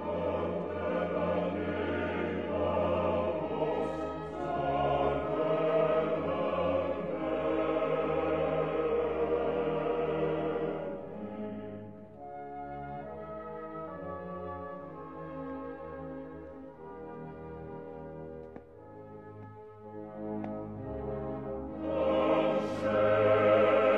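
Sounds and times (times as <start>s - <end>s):
choir singing: 0.0s - 12.4s, 21.5s - 23.9s.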